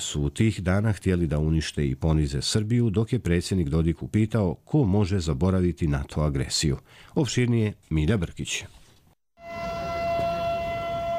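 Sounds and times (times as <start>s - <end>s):
speech: 0.0s - 8.8s
air raid siren at NATO bombing commemoration in Grdelica gorge, Serbia: 9.4s - 11.1s.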